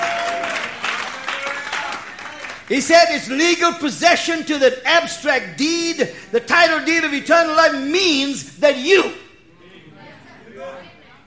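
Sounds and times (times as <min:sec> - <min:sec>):
hands clapping: 0:00.0 - 0:02.8
speech: 0:02.7 - 0:09.2.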